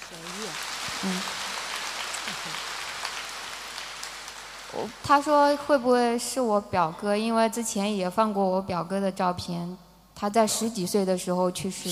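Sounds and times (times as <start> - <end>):
applause: 0.0 - 6.2
speech: 1.0 - 1.3, 2.3 - 2.7, 4.8 - 11.8.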